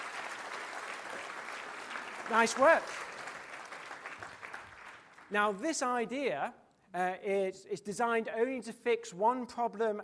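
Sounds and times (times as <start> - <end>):
audience applause: 0.0 - 5.3
speech: 2.3 - 3.0, 5.3 - 10.0.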